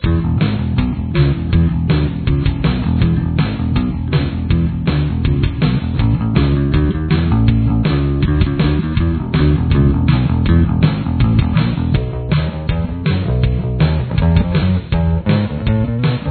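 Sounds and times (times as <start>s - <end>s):
bass: 0.0s - 16.2s.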